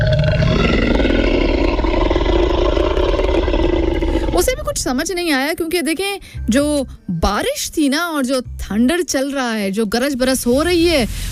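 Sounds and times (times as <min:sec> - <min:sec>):
T-rex roaring: 0:00.0 - 0:04.9
speech: 0:04.8 - 0:11.3.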